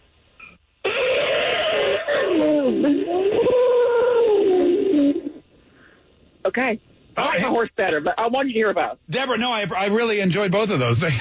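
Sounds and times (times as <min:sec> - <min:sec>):
caller imitating an elephant trumpet: 0:00.8 - 0:05.4
speech: 0:06.6 - 0:11.1.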